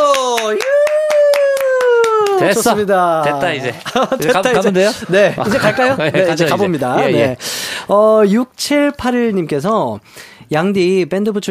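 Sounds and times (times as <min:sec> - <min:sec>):
audience clapping: 0:00.0 - 0:03.6
laughter: 0:02.2 - 0:07.4
speech: 0:02.4 - 0:11.4.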